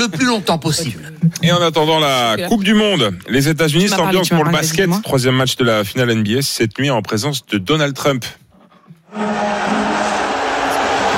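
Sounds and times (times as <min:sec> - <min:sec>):
speech: 0:00.0 - 0:08.4, 0:09.1 - 0:09.8
arena crowd whistling and booing: 0:09.1 - 0:11.1.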